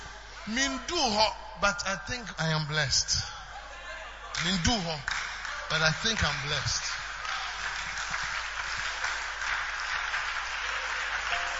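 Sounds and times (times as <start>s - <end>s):
speech: 0.5s - 3.4s, 4.4s - 6.8s
audience clapping: 4.3s - 11.5s.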